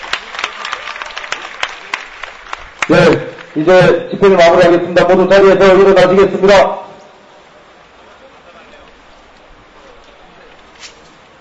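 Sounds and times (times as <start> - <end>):
crowd clapping at a gathering honoring a performer: 0.0 - 3.9
speech: 2.9 - 6.8.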